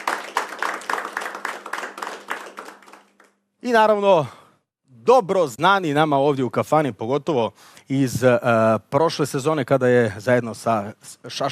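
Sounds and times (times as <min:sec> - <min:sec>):
tavern audience clapping to welcome a singer and her band: 0:00.0 - 0:03.4
speech: 0:03.6 - 0:04.4, 0:05.0 - 0:11.4.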